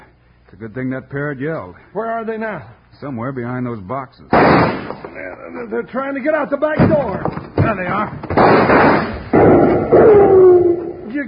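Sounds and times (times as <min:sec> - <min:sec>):
speech: 0:00.6 - 0:09.2, 0:09.9 - 0:11.2
gunshots: 0:04.3 - 0:05.2, 0:08.3 - 0:10.2.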